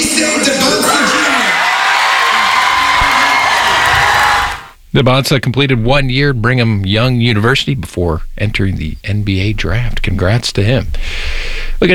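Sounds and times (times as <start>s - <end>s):
students cheering at watch party: 0.0s - 4.8s
speech: 5.0s - 11.9s.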